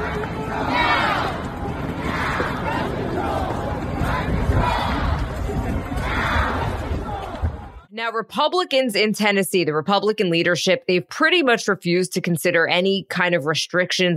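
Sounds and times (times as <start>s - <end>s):
protest crowd chanting: 0.0s - 7.9s
speech: 8.0s - 14.1s.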